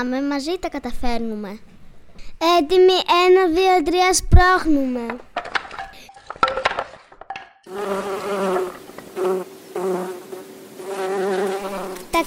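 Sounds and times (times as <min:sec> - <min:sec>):
speech: 0:00.0 - 0:01.7, 0:02.4 - 0:05.3
bees buzzing as they fly: 0:07.7 - 0:12.2.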